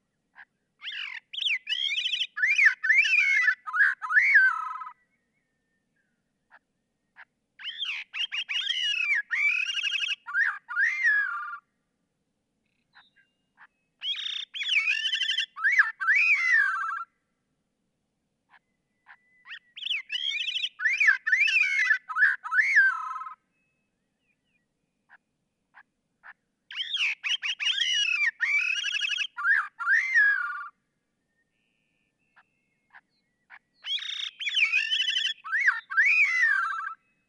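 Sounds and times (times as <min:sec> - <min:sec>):
Gray-cheeked Thrush calling: 0:00.8 - 0:04.9, 0:07.6 - 0:11.6, 0:14.0 - 0:17.0, 0:19.1 - 0:23.4, 0:25.8 - 0:30.7, 0:32.9 - 0:37.0.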